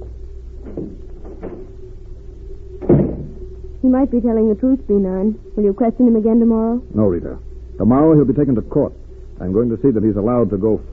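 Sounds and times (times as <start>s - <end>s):
door opening and closing: 0.6s - 1.8s, 2.8s - 3.4s
speech: 3.8s - 10.9s.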